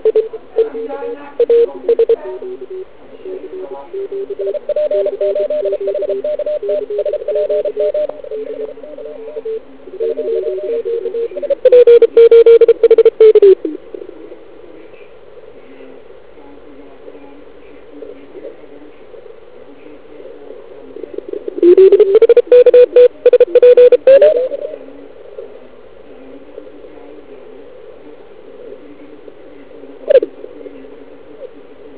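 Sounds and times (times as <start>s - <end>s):
CW morse code scan: 0.0s - 13.8s, 21.6s - 24.8s.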